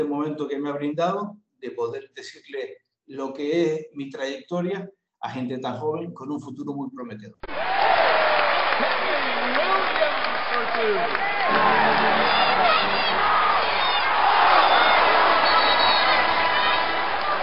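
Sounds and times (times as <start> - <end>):
speech: 0.0 - 7.7, 8.8 - 13.4
crowd shouting and cheering: 7.4 - 17.4
shrill whoops: 11.1 - 17.4.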